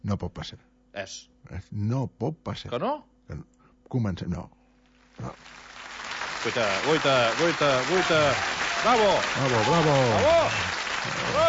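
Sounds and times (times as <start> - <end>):
speech: 0.1 - 4.6, 5.2 - 5.7, 6.4 - 11.4
applause: 5.2 - 11.4.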